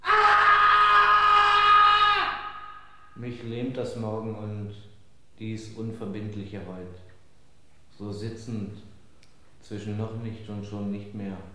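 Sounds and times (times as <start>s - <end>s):
man screaming in the night: 0.0s - 3.2s
speech: 3.2s - 7.1s, 8.0s - 8.9s, 9.6s - 11.5s.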